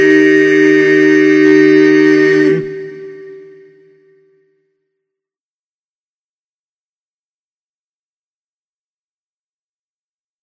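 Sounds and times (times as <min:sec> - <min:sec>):
anthem music without baritone part: 0:00.0 - 0:03.8.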